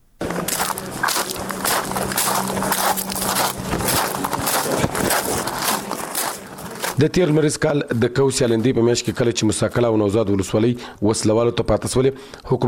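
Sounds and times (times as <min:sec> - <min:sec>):
footsteps crunching across sand: 0:00.2 - 0:09.6
speech: 0:07.0 - 0:12.6.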